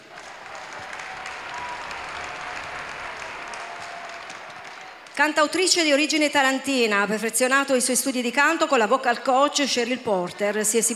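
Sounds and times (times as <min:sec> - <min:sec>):
audience applause: 0:00.0 - 0:05.2
speech: 0:05.2 - 0:10.9.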